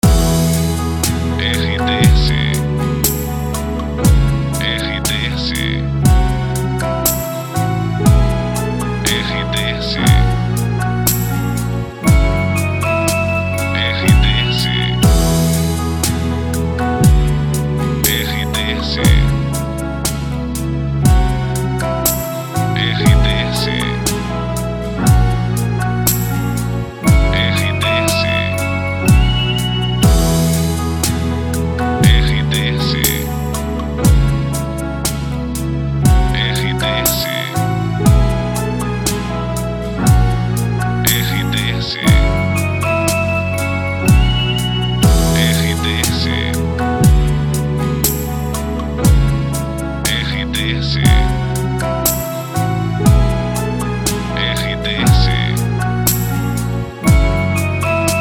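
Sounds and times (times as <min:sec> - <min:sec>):
background music for voiceover: 0:00.0 - 0:58.1.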